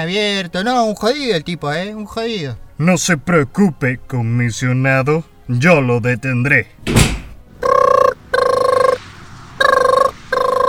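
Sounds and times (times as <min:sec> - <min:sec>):
speech: 0:00.0 - 0:07.2
cartoonish mobile phone ringtone: 0:07.6 - 0:09.0, 0:09.6 - 0:10.6.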